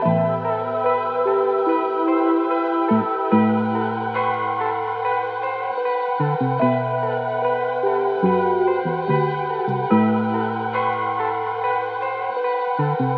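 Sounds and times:
keyboard playing: 0:00.0 - 0:13.1.

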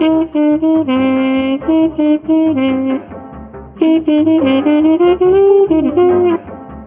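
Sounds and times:
horn loops: 0:00.0 - 0:06.8.

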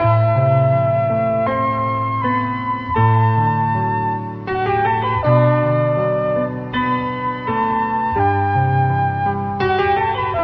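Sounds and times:
sad piano loop: 0:00.0 - 0:10.4.

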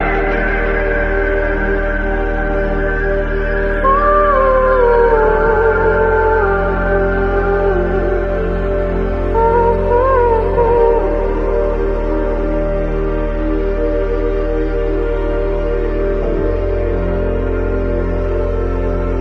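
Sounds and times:
sad keyboard loop: 0:00.0 - 0:19.2
person singing: 0:03.7 - 0:12.3.

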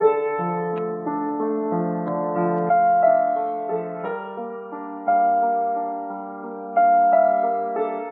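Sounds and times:
sad piano loop: 0:00.0 - 0:08.0.

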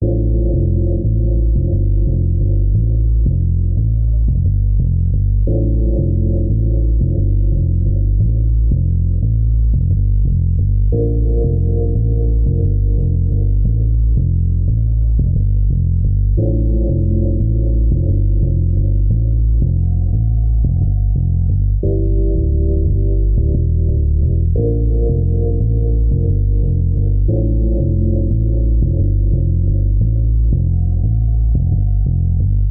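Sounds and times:
sad bass: 0:00.0 - 0:32.7.

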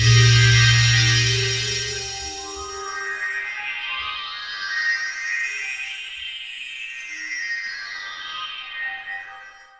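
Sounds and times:
space synth sounds: 0:00.0 - 0:03.1.

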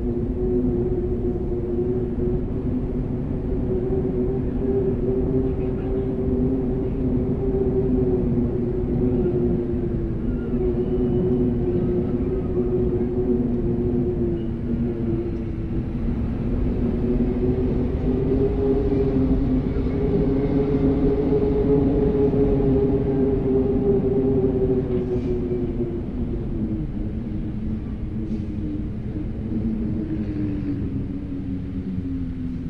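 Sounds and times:
windstorm: 0:00.0 - 0:32.6.

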